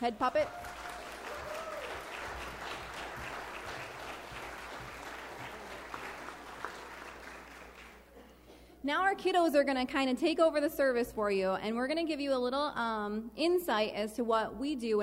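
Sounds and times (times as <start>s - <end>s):
speech: 0.0s - 0.9s, 8.8s - 15.0s
audience applause: 0.4s - 8.1s.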